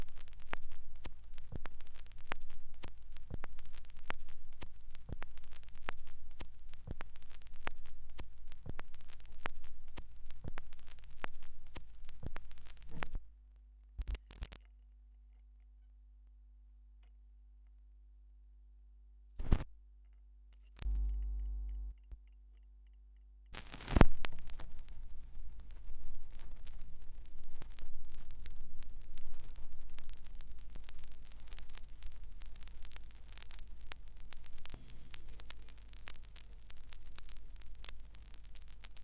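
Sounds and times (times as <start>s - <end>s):
vinyl record noise: 0.0s - 13.3s, 14.0s - 14.6s, 19.4s - 19.7s, 20.6s - 21.9s, 23.6s - 39.0s.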